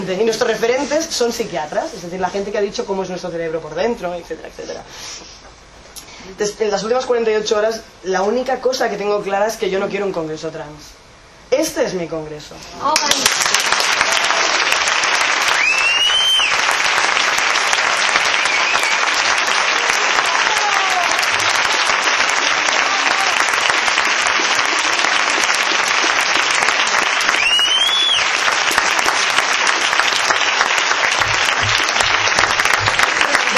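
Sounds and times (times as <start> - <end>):
speech: 0.1 - 5.5, 6.2 - 13.7
large crowd applauding: 13.0 - 33.5
sharp whistles: 15.5 - 16.6, 18.4 - 19.2, 27.3 - 28.3.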